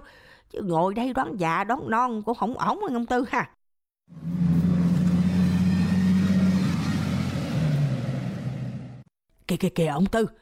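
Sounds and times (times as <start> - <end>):
speech: 0.5 - 4.3, 9.5 - 10.4
vehicle engine rumbling while pulling up to a roadside eatery: 4.1 - 9.1.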